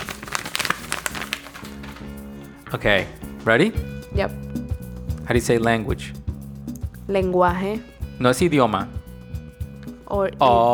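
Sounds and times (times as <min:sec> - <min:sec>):
paper rustling and crinkling: 0:00.0 - 0:02.2
speech: 0:02.7 - 0:04.4, 0:05.3 - 0:06.2, 0:07.1 - 0:09.0, 0:10.1 - 0:10.7.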